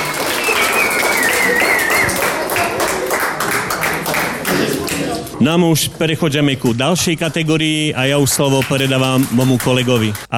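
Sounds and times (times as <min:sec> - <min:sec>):
audience applause: 0:00.0 - 0:05.4, 0:08.5 - 0:10.3
faint high whistle or cheer: 0:00.3 - 0:02.3
speech: 0:05.4 - 0:10.3.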